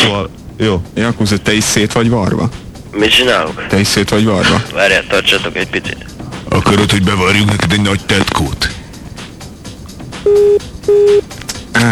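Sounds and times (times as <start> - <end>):
speech: 0.0 - 8.8, 10.2 - 11.2
low noise: 0.0 - 11.8
mid-pitched telephone beeps over a speakerphone: 10.3 - 11.2.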